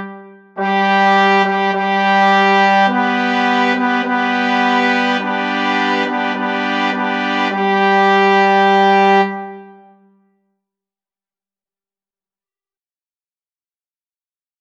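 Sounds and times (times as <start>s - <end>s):
fanfare: 0.0s - 10.1s.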